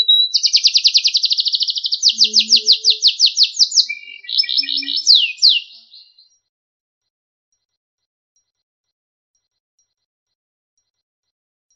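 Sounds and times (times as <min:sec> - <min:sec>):
canary song: 0:00.0 - 0:06.4.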